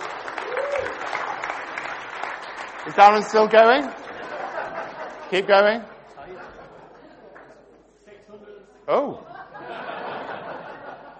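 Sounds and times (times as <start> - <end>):
audience applause: 0.0 - 5.0
speech: 2.8 - 4.0, 5.3 - 5.9, 8.9 - 9.3
laughter: 3.9 - 7.4, 9.1 - 11.1.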